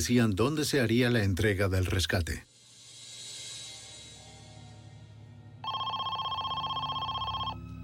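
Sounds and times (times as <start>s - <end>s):
speech: 0.0s - 2.5s
telephone ringing with a rapid trilling electronic bell: 5.6s - 7.6s.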